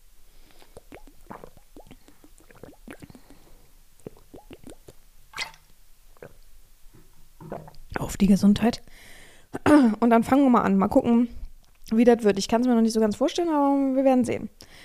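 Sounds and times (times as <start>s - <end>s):
wet mouth clicks, slurps and gulps: 0.4s - 5.6s, 6.2s - 6.4s, 7.4s - 7.9s
person sipping water: 0.4s - 6.4s, 7.0s - 7.9s
speech: 8.1s - 9.1s, 9.8s - 14.6s.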